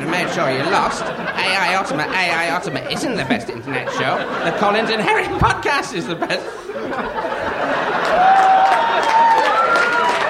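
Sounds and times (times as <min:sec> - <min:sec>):
laughter: 0:00.0 - 0:10.2
speech: 0:00.2 - 0:07.5, 0:08.2 - 0:08.5
crowd applause: 0:07.0 - 0:10.2.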